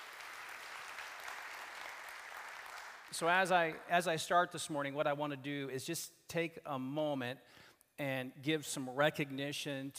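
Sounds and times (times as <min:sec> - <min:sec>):
audience applause: 0:00.0 - 0:03.8
speech: 0:03.1 - 0:09.9.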